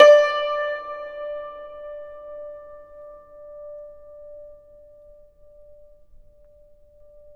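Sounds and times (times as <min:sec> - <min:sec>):
yangchin hammered dulcimer: 0:00.0 - 0:02.2.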